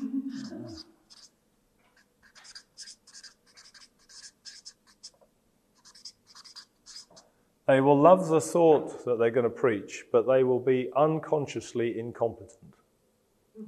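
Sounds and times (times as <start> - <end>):
pen writing on paper: 0.3 - 1.3, 1.9 - 5.2, 5.8 - 7.2
speech: 7.7 - 12.8.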